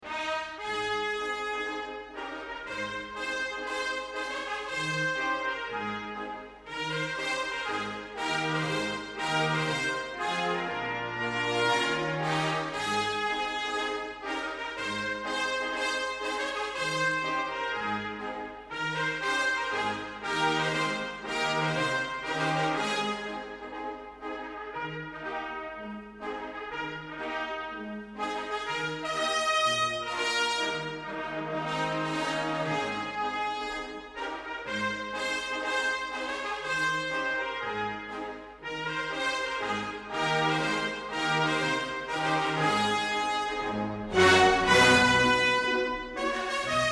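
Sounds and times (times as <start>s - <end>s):
trumpets: 0.0s - 46.8s.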